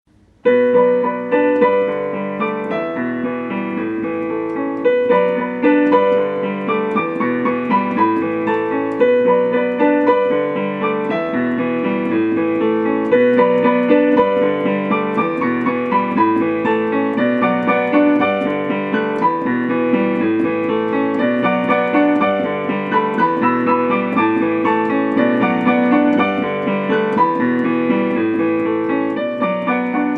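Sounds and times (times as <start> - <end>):
piano: 0.0 - 30.1.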